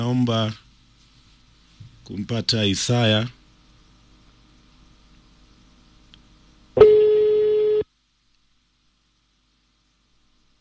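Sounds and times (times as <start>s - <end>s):
speech: 0.0s - 0.6s, 2.1s - 3.4s
telephone tone after a phone call is cut off: 6.8s - 7.9s.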